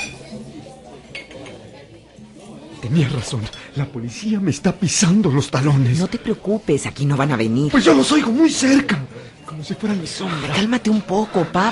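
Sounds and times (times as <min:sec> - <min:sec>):
clinking dishes, cups and cutlery in a café: 0:00.0 - 0:00.4, 0:01.0 - 0:01.7
murmur of voices in a busy café: 0:00.0 - 0:11.7
speech: 0:02.8 - 0:11.7.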